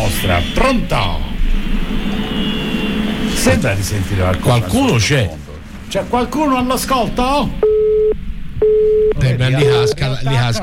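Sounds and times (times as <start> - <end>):
speech: 0.1 - 2.4, 3.4 - 7.7, 9.3 - 10.6
people talking over a telephone line: 3.5 - 10.6
telephone line signal beeps during a call: 7.6 - 10.0.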